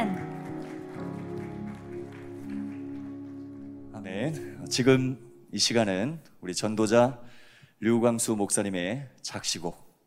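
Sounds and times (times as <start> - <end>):
audience applause: 0.0 - 4.9
speech: 4.1 - 9.8.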